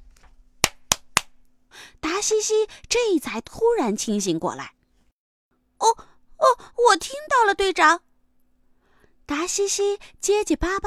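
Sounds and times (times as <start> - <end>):
hard hand clapping by the ear: 0.6 - 1.4
speech: 2.2 - 4.8, 6.8 - 8.1, 9.3 - 10.8.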